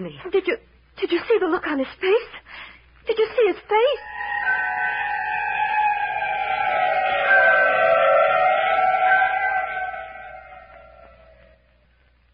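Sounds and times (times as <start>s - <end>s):
speech: 0.0s - 4.2s
wolves howling: 4.0s - 11.6s.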